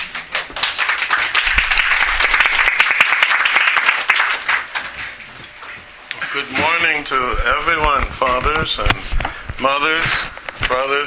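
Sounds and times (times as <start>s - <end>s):
crowd clapping: 0.0s - 5.3s
speech: 6.4s - 11.0s.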